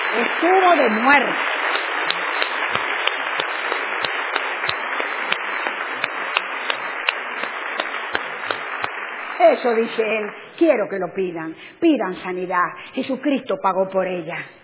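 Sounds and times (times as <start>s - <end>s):
audience applause: 0.0s - 10.5s
speech: 0.1s - 1.6s, 9.4s - 14.6s.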